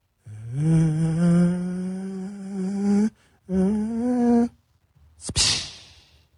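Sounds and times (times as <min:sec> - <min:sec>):
man's voice imitating a distant airplane drone: 0:00.5 - 0:04.5.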